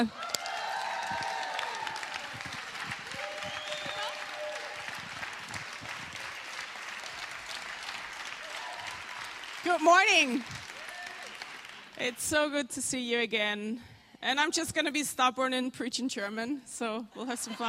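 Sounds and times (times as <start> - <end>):
speech: 0.0 - 0.2, 9.6 - 10.6, 12.0 - 17.6
church congregation applauding: 0.0 - 12.2.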